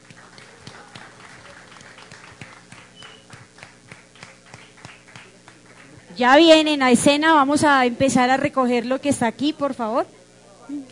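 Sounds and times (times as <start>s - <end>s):
audience applause: 0.0s - 6.3s
speech: 6.2s - 10.9s.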